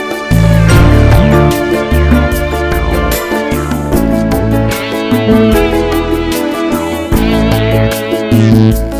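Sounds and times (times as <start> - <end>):
sweet blues ballad: 0.1 - 8.9.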